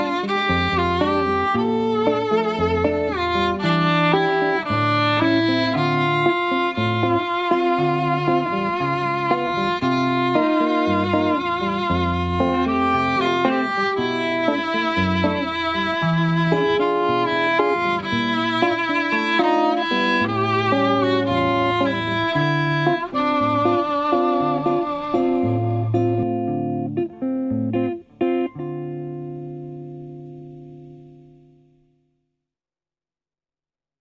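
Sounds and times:
classical violin: 0.0 - 27.0
classical guitar: 0.0 - 32.1.

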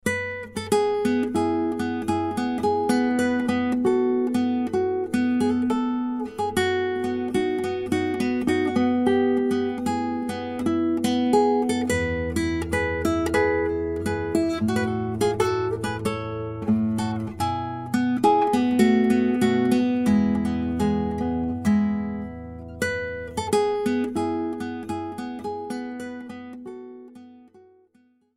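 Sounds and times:
classical guitar: 0.0 - 28.3.

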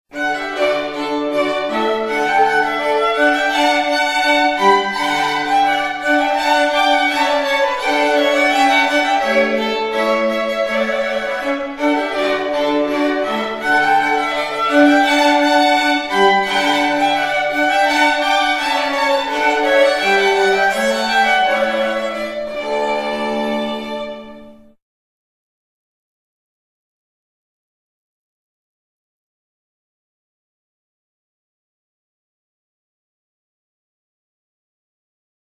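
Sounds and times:
classical string quartet playing a rondeau: 0.1 - 24.8.

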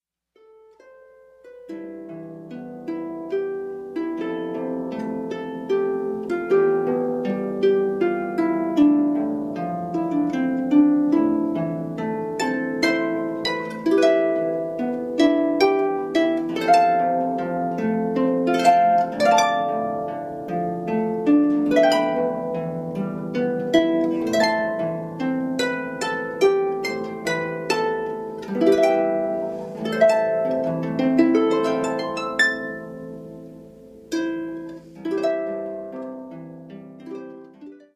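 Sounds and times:
solo harp: 0.4 - 37.9.

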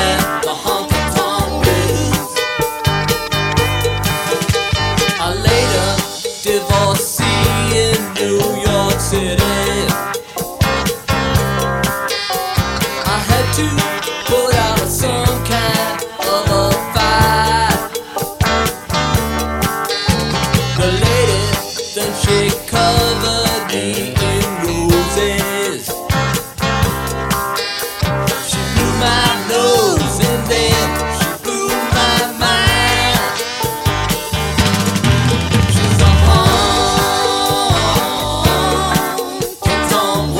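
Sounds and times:
honky tonk music by a variety band: 0.0 - 40.3.

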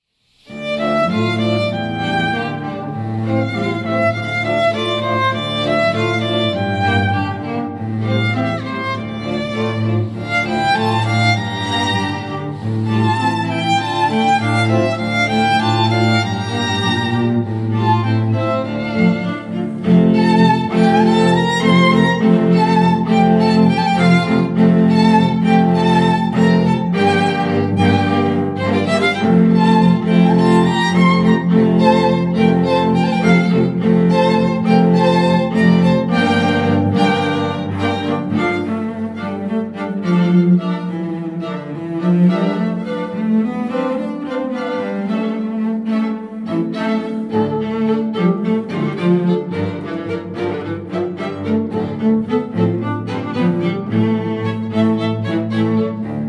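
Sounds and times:
string quartet: 0.0 - 56.2.

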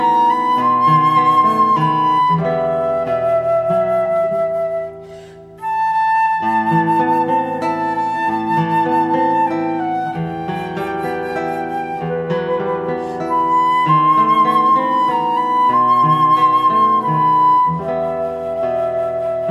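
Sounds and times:
flute: 0.0 - 19.4
guitar: 0.0 - 19.4.

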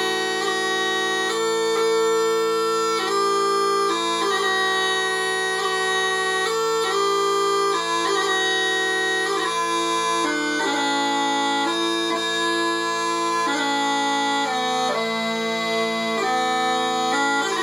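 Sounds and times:
smallpipes bagpipes playing: 0.0 - 17.6.

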